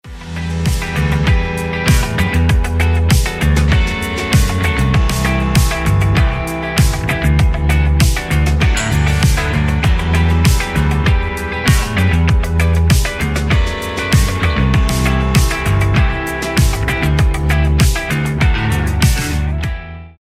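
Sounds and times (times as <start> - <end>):
instrumental music: 0.0 - 20.1.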